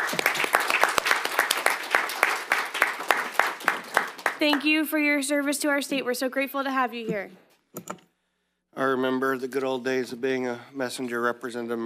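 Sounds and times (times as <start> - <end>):
round of applause: 0.0 - 4.7
speech: 4.4 - 8.0, 8.8 - 11.8.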